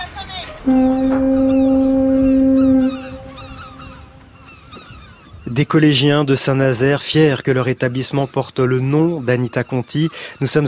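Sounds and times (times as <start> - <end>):
speech: 0.6 - 1.4, 5.6 - 10.6
school bell sounding as a foghorn blast: 0.7 - 3.4.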